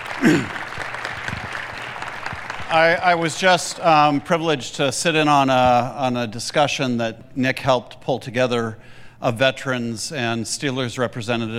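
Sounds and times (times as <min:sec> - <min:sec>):
crowd applause: 0:00.0 - 0:04.4
speech: 0:00.3 - 0:00.6, 0:02.7 - 0:11.5.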